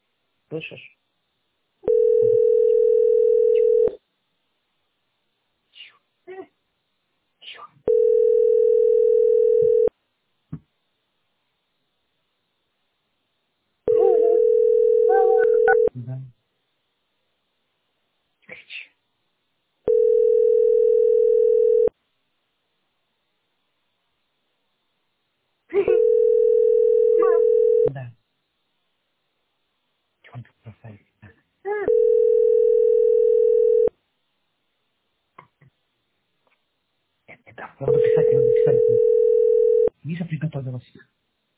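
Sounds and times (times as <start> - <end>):
speech: 0.5 - 1.0
outgoing call ringing tone: 1.8 - 4.0, 7.9 - 9.9, 13.9 - 15.9, 19.9 - 21.9, 25.9 - 27.9, 31.9 - 33.9, 37.9 - 39.9.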